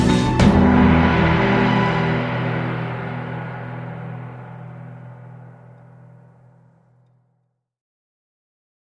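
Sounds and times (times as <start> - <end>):
drums: 0.0 - 6.2.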